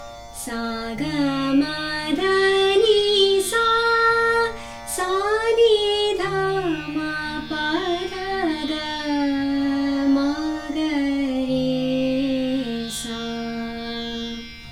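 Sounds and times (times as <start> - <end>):
Hindustani raga Bageshree ascending scale: 0.0 - 14.6.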